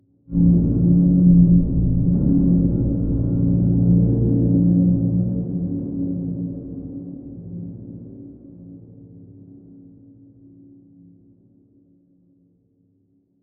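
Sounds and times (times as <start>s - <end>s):
slow musical stab: 0.3s - 7.6s.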